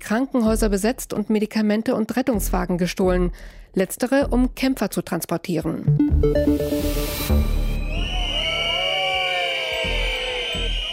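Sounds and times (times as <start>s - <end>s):
speech: 0.1s - 7.5s
many shrill whistles from a crowd: 7.5s - 10.9s.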